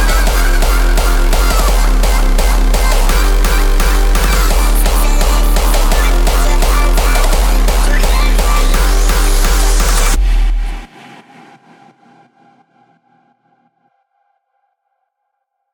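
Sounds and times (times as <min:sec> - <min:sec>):
37-41Hz low bass tone: 0:00.0 - 0:10.9.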